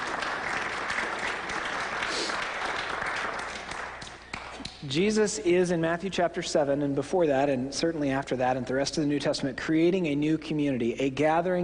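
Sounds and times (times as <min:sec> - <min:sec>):
audience applause: 0:00.0 - 0:04.6
speech: 0:04.9 - 0:11.6.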